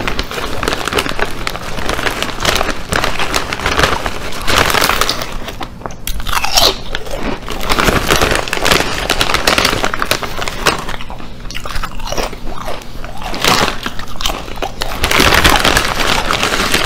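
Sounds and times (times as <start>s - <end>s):
man eating chips loudly: 0.0s - 16.8s.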